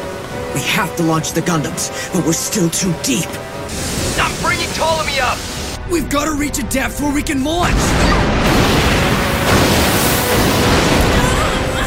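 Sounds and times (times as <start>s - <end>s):
speech: 0.6s - 8.8s
depth charges and bombs dropped onto a submerged ship in a Gundam anime battle: 5.8s - 11.8s.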